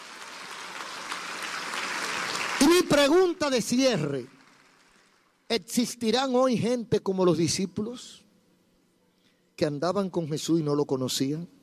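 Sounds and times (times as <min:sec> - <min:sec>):
audience applauding: 0:00.0 - 0:05.4
speech: 0:02.8 - 0:04.4, 0:05.5 - 0:08.2, 0:09.6 - 0:11.6.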